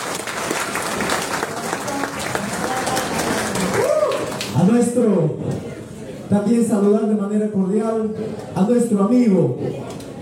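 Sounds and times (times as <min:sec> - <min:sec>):
audience applause: 0:00.0 - 0:04.6
speech: 0:05.0 - 0:05.5, 0:06.3 - 0:09.9.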